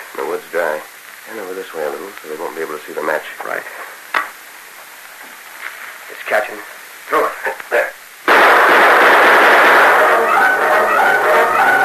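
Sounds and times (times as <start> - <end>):
speech: 0.3 - 3.9, 6.3 - 7.8
gunfire from outlaws in a radio drama: 8.3 - 11.8.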